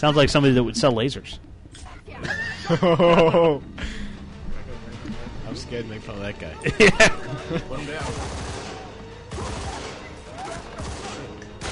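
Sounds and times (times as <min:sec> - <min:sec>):
speech: 0:00.0 - 0:04.0, 0:05.5 - 0:08.6
laughter: 0:02.2 - 0:04.1, 0:06.6 - 0:08.2
gunfire in a video game shootout: 0:08.0 - 0:11.7.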